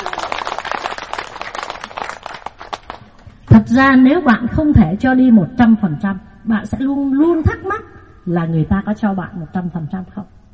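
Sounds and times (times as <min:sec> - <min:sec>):
audience applause: 0:00.0 - 0:03.1
speech: 0:03.7 - 0:10.4.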